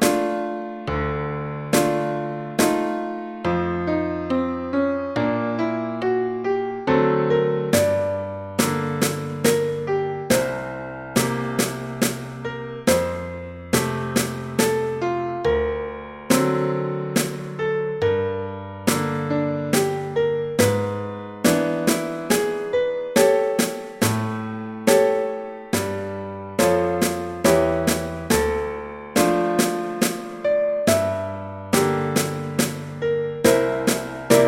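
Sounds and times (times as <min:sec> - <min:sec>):
drum: 0:00.0 - 0:00.4, 0:01.8 - 0:03.0, 0:07.8 - 0:15.0, 0:16.3 - 0:17.6, 0:18.9 - 0:34.4
piano: 0:00.0 - 0:34.4.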